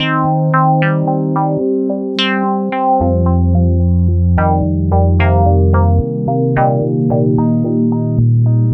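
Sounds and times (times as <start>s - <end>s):
IDM electronic music melody: 0.0s - 8.7s.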